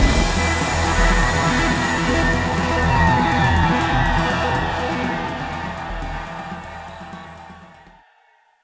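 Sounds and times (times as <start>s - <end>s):
music sting: 0.0s - 7.9s.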